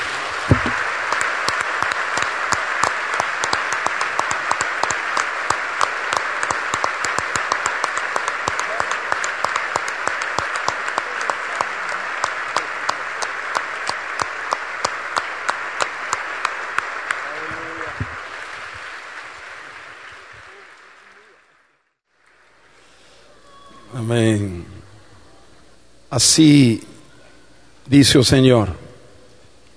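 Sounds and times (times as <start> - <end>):
large group clapping hands: 0.1 - 22.4
speech: 26.2 - 26.9, 27.9 - 28.8.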